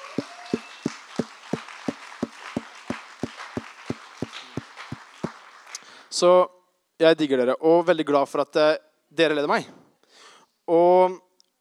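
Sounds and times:
rhythmic clapping in unison: 0.0 - 6.0
crowd noise: 0.0 - 6.5
speech: 6.2 - 9.8, 10.7 - 11.2.

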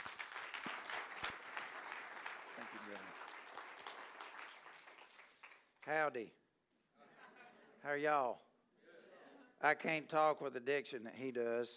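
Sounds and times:
audience clapping to welcome a speaker at a morning event: 0.0 - 6.0
speech: 5.8 - 6.4, 7.8 - 8.5, 9.6 - 11.7.

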